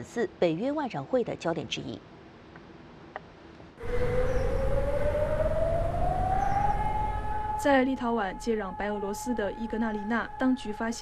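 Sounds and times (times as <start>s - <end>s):
speech: 0.0s - 2.2s, 7.6s - 10.9s
air raid siren wailing: 3.8s - 10.9s.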